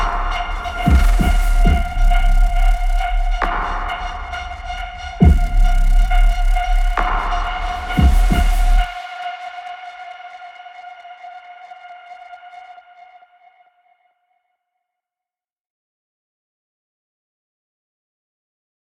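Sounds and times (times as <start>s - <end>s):
combat intro music loop: 0.0s - 9.0s.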